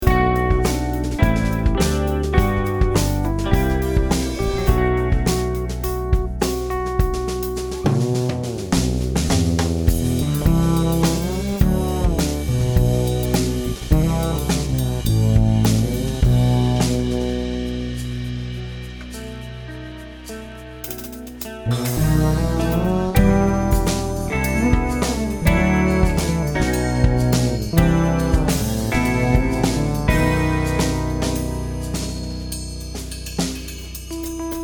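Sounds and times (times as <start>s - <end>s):
bass: 0.0s - 34.6s.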